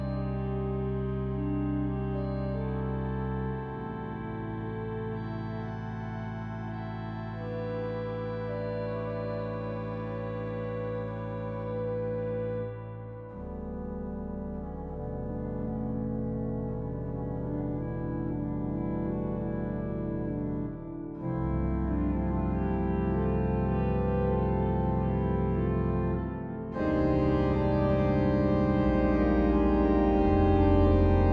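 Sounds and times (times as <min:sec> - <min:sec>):
organ improvisation: 0:00.0 - 0:31.3.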